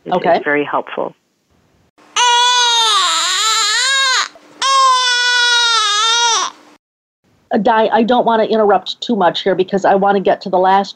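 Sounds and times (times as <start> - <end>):
speech: 0.1 - 1.2, 7.5 - 10.9
colicky infant crying: 2.2 - 6.6.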